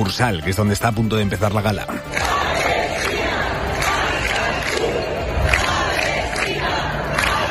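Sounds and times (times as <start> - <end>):
speech: 0.0 - 2.3
protesters chanting pro-Palestine slogans: 1.9 - 7.4.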